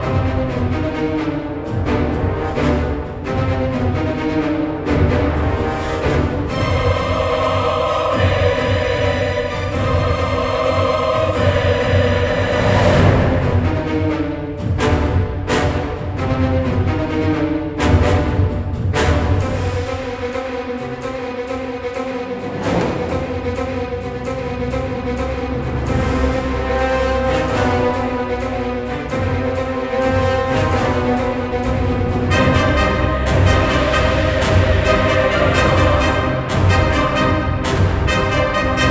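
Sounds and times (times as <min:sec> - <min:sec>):
combat music loop: 0:00.0 - 0:38.8.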